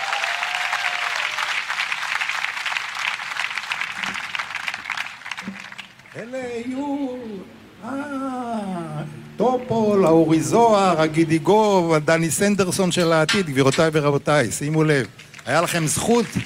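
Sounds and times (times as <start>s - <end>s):
crowd applause: 0.0s - 6.2s, 15.2s - 16.4s
man speaking in a raised voice: 6.1s - 16.4s
speech: 6.2s - 16.4s.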